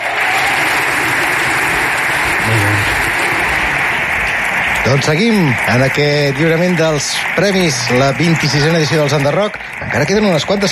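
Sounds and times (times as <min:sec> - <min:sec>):
loud audience applause: 0:00.0 - 0:10.7
speech: 0:04.9 - 0:10.7.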